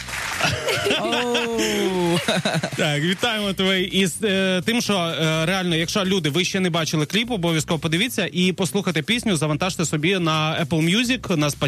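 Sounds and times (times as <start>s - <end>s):
applause sound effect: 0.0s - 1.1s, 1.8s - 3.4s
laughter: 0.3s - 3.4s
speech: 0.8s - 11.6s.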